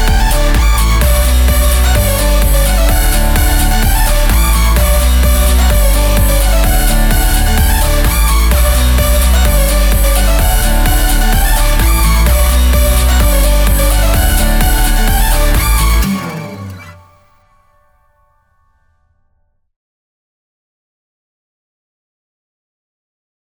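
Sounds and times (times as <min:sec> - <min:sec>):
strummed acoustic guitar: 0:00.0 - 0:17.3.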